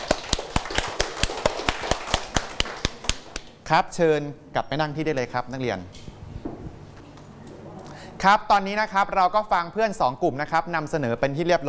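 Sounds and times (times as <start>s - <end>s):
students applauding: 0.0s - 3.5s
speech: 3.7s - 6.0s, 8.2s - 11.6s.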